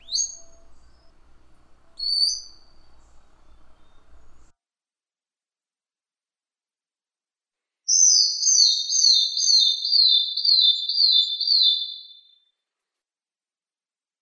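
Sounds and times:
bird singing one long high pure whistle: 0.0s - 1.2s, 1.8s - 4.5s, 7.9s - 12.3s.

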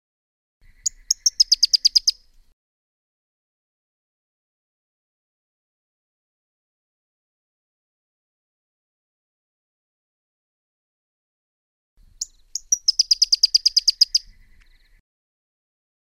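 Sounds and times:
Pyrrhuloxia giving a rapid chattering series of crisp high chip notes: 0.8s - 2.2s, 12.2s - 14.3s.

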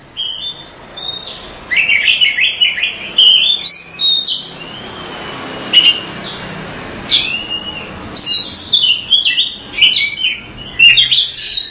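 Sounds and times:
Oriental magpie-robin whistled song: 0.2s - 6.4s, 7.1s - 11.6s.

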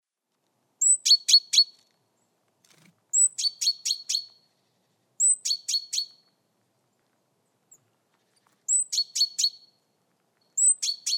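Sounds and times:
female Java sparrow calling: 0.8s - 1.9s, 3.2s - 4.5s, 5.2s - 6.3s, 8.7s - 9.6s, 10.5s - 11.1s.

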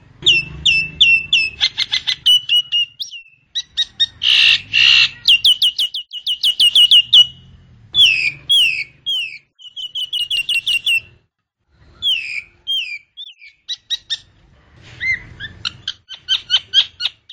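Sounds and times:
Nias hill myna whistled and squawky calls: 0.2s - 7.4s, 8.0s - 11.1s, 12.0s - 14.3s, 14.9s - 17.3s.

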